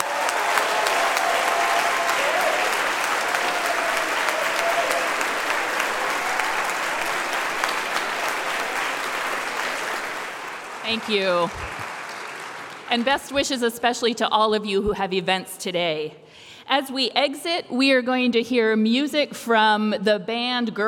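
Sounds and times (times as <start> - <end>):
applause from a large audience: 0.0 - 13.3
speech: 10.9 - 11.7, 12.9 - 20.8.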